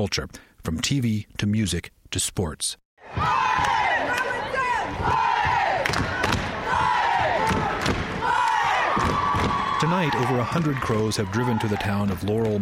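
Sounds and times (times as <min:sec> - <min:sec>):
speech: 0:00.0 - 0:03.7, 0:09.8 - 0:12.6
basketball crowd war cries: 0:03.0 - 0:12.0.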